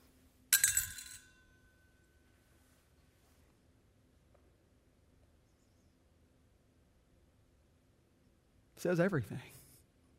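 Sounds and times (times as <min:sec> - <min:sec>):
copper coins dropping: 0:00.5 - 0:01.4
speech: 0:08.8 - 0:09.6.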